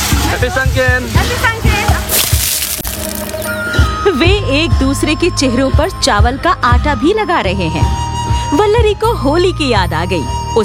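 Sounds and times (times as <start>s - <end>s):
water splashing from buckets: 0.0s - 3.6s
speech: 0.4s - 1.6s, 3.0s - 10.6s.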